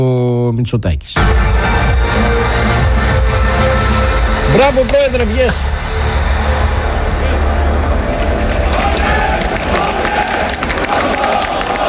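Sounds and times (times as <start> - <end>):
speech: 0.0 - 2.7, 4.5 - 6.5
crowd shouting and cheering at a political rally: 1.2 - 11.8
scattered claps and whistles: 8.6 - 11.8.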